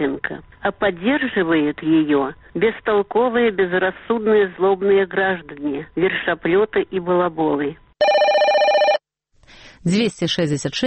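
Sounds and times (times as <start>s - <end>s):
speech: 0.0s - 7.8s, 9.8s - 10.8s
telephone ringing in radio station jingle: 8.0s - 9.0s.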